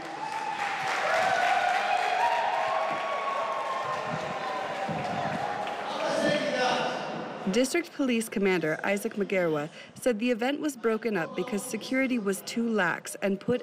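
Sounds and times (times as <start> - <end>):
crowd cheering: 0.0 - 7.2
speech: 7.5 - 13.6.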